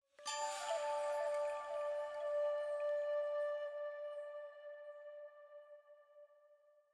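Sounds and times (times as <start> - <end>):
chime in D: 0.2 - 3.0
item flute jingle: 0.2 - 5.2.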